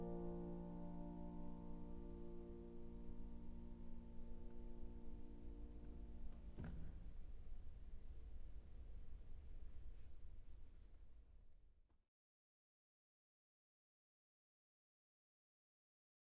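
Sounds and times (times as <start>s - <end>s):
impromptu piece in B-flat: 0.0s - 11.1s.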